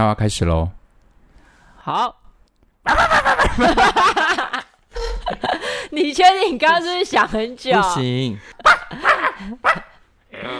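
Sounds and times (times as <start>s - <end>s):
speech: 0.0s - 0.8s, 1.8s - 2.2s, 3.6s - 4.2s, 5.3s - 9.8s
laughter: 2.9s - 5.8s, 8.5s - 10.0s
person imitating a small dog's yappy barking: 9.1s - 10.5s.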